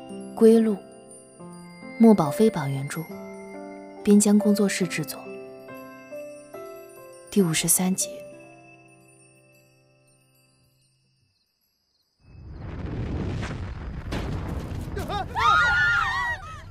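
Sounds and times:
speech: 0:00.4 - 0:00.9, 0:02.0 - 0:03.2, 0:04.0 - 0:05.3, 0:07.4 - 0:08.2
explosion: 0:12.4 - 0:16.6.

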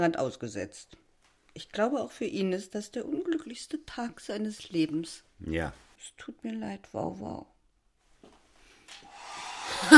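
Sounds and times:
speech: 0:00.0 - 0:01.0, 0:01.6 - 0:07.5
hair dryer running: 0:09.0 - 0:09.9.

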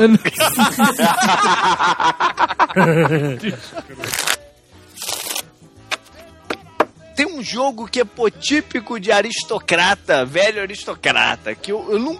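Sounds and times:
people chuckling: 0:00.0 - 0:04.3
speech: 0:00.0 - 0:04.4, 0:07.4 - 0:12.1
Spanish deck of playing cards being shuffled: 0:04.0 - 0:06.1.

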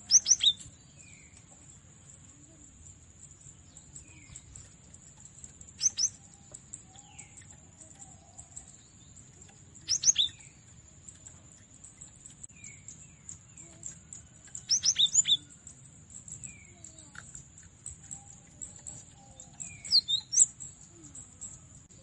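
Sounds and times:
cinereous tit calling in rapid high slurred chirps: 0:00.0 - 0:22.0.

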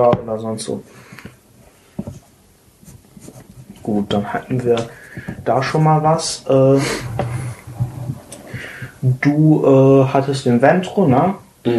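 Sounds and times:
speech: 0:00.0 - 0:01.2, 0:03.9 - 0:07.3, 0:09.2 - 0:11.7
pen scratching across a character sheet: 0:02.8 - 0:04.2.

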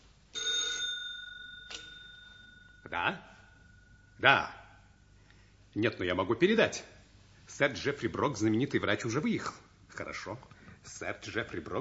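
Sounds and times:
telephone bell ringing: 0:00.4 - 0:02.9
speech: 0:02.9 - 0:03.4, 0:04.2 - 0:04.6, 0:05.8 - 0:06.9, 0:07.5 - 0:11.7.

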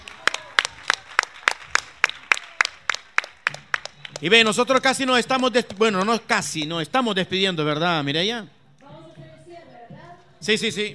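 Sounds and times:
audience applause: 0:00.0 - 0:04.7
speech: 0:04.2 - 0:08.6, 0:10.4 - 0:10.9.

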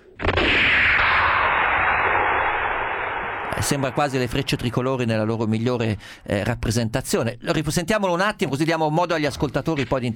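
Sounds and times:
western film gunshot sound effect: 0:00.2 - 0:05.0
speech: 0:03.7 - 0:10.1.

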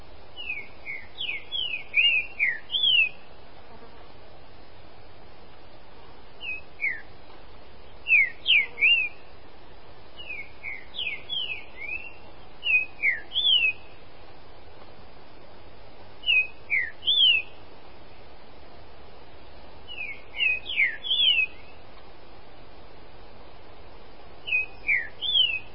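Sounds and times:
Green-winged Saltator song of bright whistled notes: 0:00.4 - 0:03.3, 0:06.4 - 0:07.1, 0:08.0 - 0:09.3, 0:10.2 - 0:14.0, 0:16.2 - 0:17.6, 0:19.9 - 0:21.8, 0:24.4 - 0:25.7.

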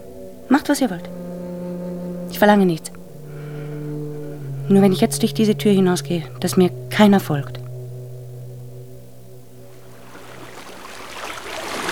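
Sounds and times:
low steady droning hum: 0:00.0 - 0:11.9
speech: 0:00.5 - 0:01.2, 0:02.3 - 0:02.9, 0:04.7 - 0:07.6
rush of moving water and lapping waves from someone swimming: 0:09.8 - 0:11.9.

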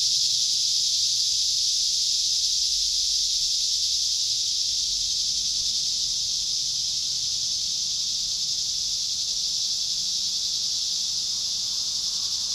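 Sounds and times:
cicadas droning: 0:00.0 - 0:12.5.

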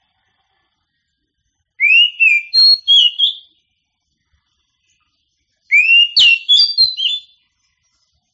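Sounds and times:
Oriental magpie-robin song with rising whistles and sharp varied whistled notes: 0:01.8 - 0:03.4, 0:05.7 - 0:07.3.

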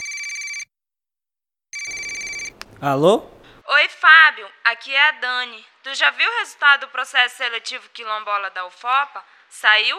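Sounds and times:
telephone ringing with an incoming call: 0:00.0 - 0:00.7, 0:01.8 - 0:02.6
speech: 0:02.8 - 0:09.9.

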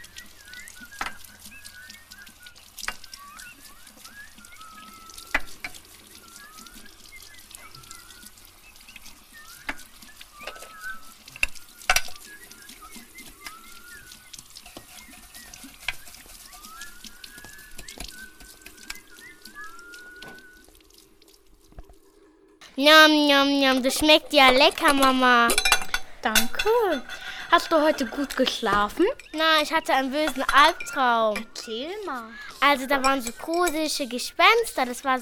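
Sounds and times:
breakfast food sizzling in a pan: 0:00.0 - 0:22.1, 0:22.8 - 0:35.1
faint high chirps: 0:00.0 - 0:35.1
shower water running: 0:00.0 - 0:35.1
speech: 0:22.8 - 0:35.1.

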